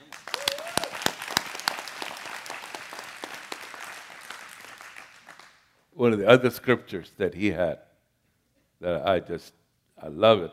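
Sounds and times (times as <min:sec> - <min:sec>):
audience clapping: 0:00.0 - 0:05.8
speech: 0:06.0 - 0:07.9, 0:08.8 - 0:10.5.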